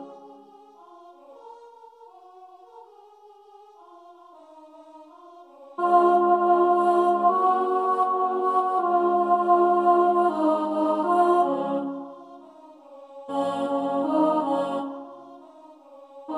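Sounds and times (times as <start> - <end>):
soprano singing: 5.8 - 12.2, 13.3 - 15.1.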